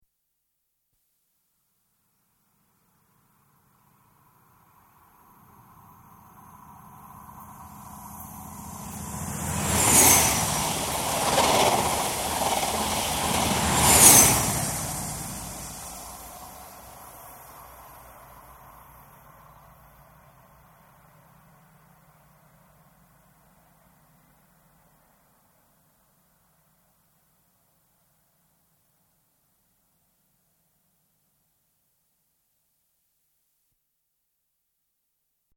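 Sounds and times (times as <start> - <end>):
Inter City 125 high speed train passing right to left: 5.1 - 22.0.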